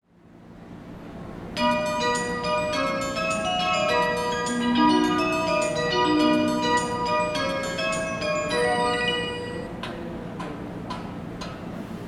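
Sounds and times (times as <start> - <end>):
melody: 1.6 - 9.8.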